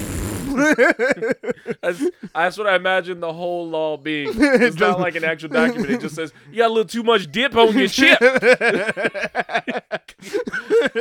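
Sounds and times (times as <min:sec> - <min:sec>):
voice imitating a fart: 0:00.0 - 0:00.7
laughter: 0:00.5 - 0:02.4, 0:04.2 - 0:06.4, 0:07.2 - 0:10.9
speech: 0:00.6 - 0:10.9.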